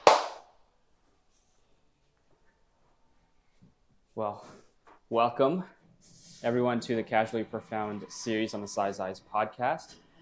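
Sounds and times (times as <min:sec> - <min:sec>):
single hand clap: 0:00.0 - 0:00.5
speech: 0:04.2 - 0:05.8, 0:06.4 - 0:10.0.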